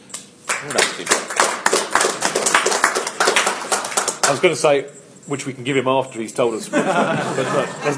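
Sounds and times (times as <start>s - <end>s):
audience applause: 0.5s - 4.4s
speech: 0.6s - 1.4s, 4.3s - 7.9s
laughter: 6.6s - 7.9s.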